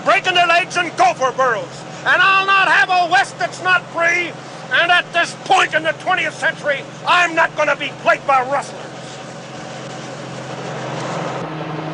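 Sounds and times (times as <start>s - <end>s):
helicopter engine: 0.0s - 11.9s
speech: 0.7s - 9.0s.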